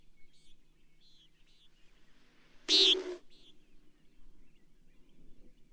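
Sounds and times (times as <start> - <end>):
bird rasping high buzzes: 2.7 - 3.3.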